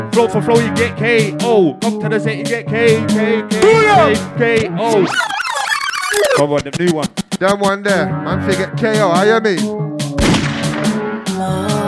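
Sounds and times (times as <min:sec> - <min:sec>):
speech: 0:00.0 - 0:05.4, 0:06.4 - 0:09.8
steady tonal music beat: 0:00.6 - 0:08.0
gunshot sound effects: 0:10.2 - 0:11.0.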